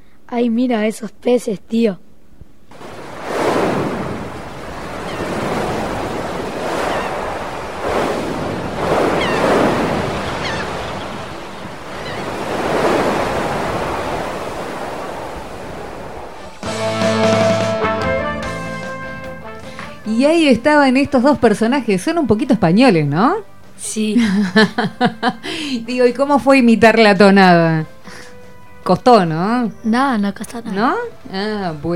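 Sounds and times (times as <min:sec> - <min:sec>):
speech: 0:00.3 - 0:02.1, 0:20.4 - 0:27.9, 0:28.8 - 0:31.9
ocean waves and surf: 0:02.7 - 0:17.9
laughter: 0:24.2 - 0:25.4.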